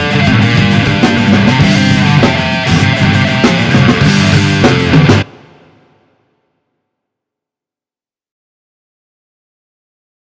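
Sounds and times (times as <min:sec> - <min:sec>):
riff: 0:00.0 - 0:05.3.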